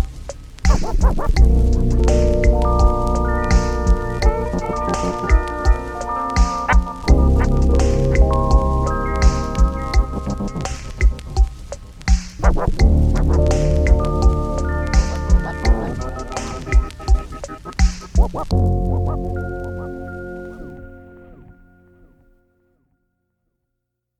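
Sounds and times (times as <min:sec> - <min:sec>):
atmospheric instrumental music: 0:00.0 - 0:22.4.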